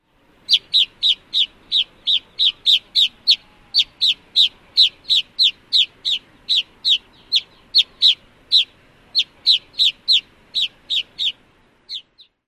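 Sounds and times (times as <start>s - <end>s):
bird song: 0.4s - 12.4s.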